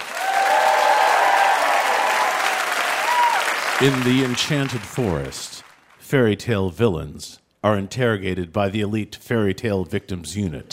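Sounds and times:
audience applause welcoming a guest at a live comedy game: 0:00.0 - 0:06.0
speech: 0:03.8 - 0:10.7.

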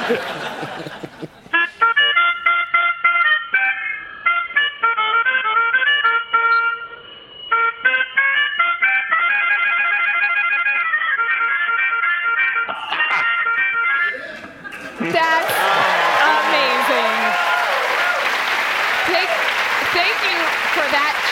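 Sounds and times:
laughter: 0:00.0 - 0:02.2, 0:12.7 - 0:17.5
melodica being played, a short toot: 0:01.5 - 0:14.3, 0:18.8 - 0:21.3.

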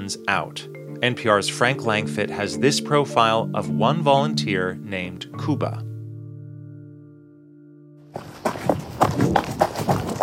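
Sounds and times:
speech: 0:00.1 - 0:05.9
running footsteps through rubble-strewn streets of Bakhmut: 0:08.1 - 0:10.2.

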